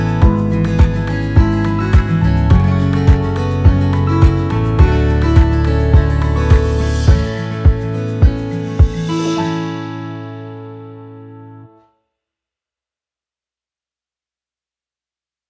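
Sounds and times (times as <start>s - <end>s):
instrumental acoustic guitar: 0.0s - 11.9s.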